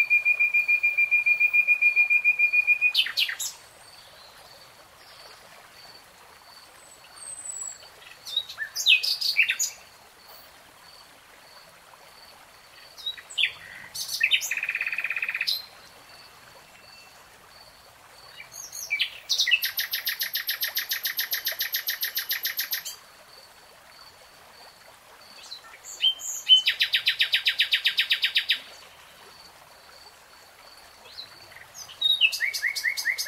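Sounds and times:
nightingale song: 0.0 - 4.3, 6.8 - 9.9, 13.0 - 17.3, 18.3 - 23.0, 25.4 - 29.2, 31.0 - 33.2.

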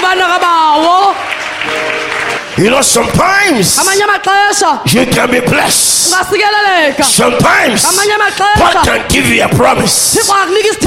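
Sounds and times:
audience clapping: 0.0 - 4.7
speech: 2.6 - 10.8.

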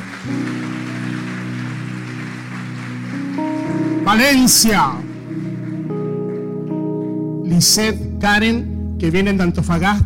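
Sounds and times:
audience applause: 0.0 - 7.3
speech: 0.2 - 0.6, 4.1 - 5.1, 7.6 - 10.0.

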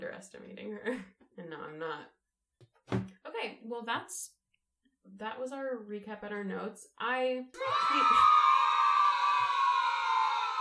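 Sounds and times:
speech: 0.1 - 2.2, 2.9 - 4.4, 5.0 - 8.5
long crowd cheer: 7.6 - 10.5.

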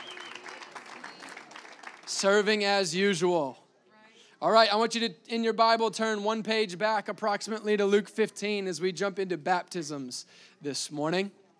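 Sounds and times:
audience applause: 0.0 - 2.4
speech: 2.2 - 3.6, 4.4 - 11.4.

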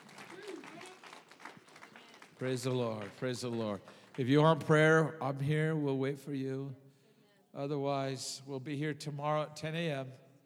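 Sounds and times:
audience clapping: 0.0 - 5.0
speech: 2.4 - 6.8, 7.6 - 10.2.

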